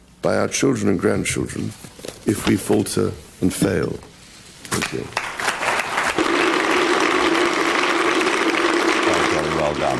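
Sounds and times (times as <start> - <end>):
speech: 0.2 - 4.1, 4.7 - 5.2, 9.7 - 9.9
large crowd applauding in standing ovation: 5.2 - 9.9.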